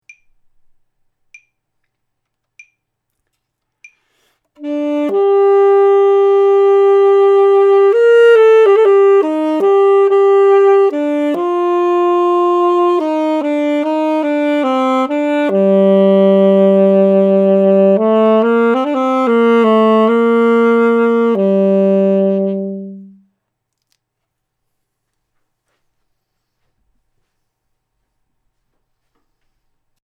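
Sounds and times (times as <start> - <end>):
saxophone playing G: 4.6 - 23.3.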